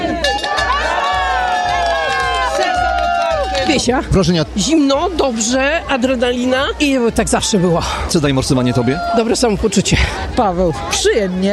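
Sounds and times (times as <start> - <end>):
crowd cheering: 0.0 - 4.1, 7.0 - 9.7
speech: 3.7 - 11.5.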